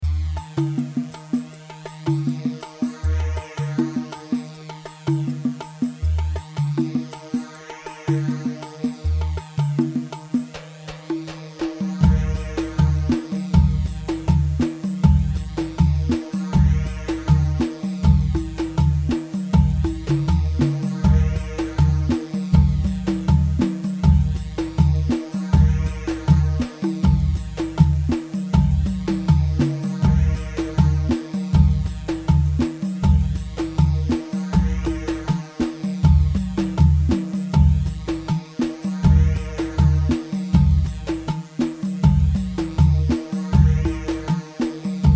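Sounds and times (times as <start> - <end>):
khaleeji harbi rhythm music in four-four: 0.0 - 45.1.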